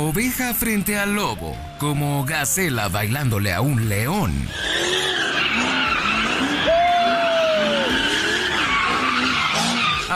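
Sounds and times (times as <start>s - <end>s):
speech: 0.0s - 5.0s
car engine roaring: 0.0s - 10.1s
car doing street donuts, tires squealing: 4.4s - 10.1s.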